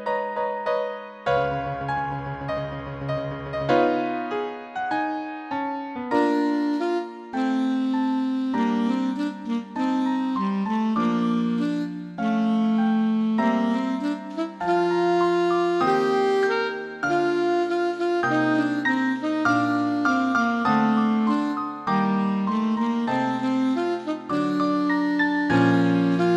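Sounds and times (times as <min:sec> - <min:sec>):
saxophone: 0:00.1 - 0:26.3.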